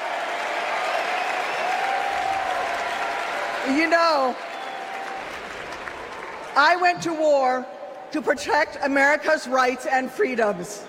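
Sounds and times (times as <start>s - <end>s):
crowd applauding and cheering: 0.0s - 7.0s
speech: 3.6s - 4.5s, 6.6s - 10.8s.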